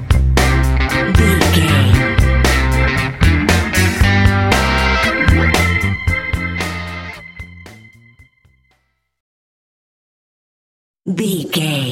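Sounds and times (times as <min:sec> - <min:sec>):
hip blues riff: 0:00.1 - 0:08.2.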